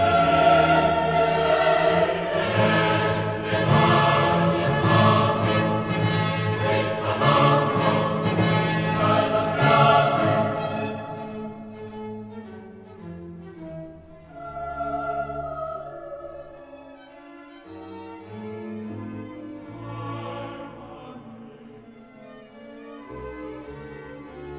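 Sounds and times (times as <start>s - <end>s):
requiem soloists singing: 0.0s - 11.5s, 19.7s - 21.8s
requiem chorus singing: 0.0s - 12.0s, 14.1s - 17.0s, 19.0s - 22.4s
requiem orchestra playing: 0.0s - 12.2s.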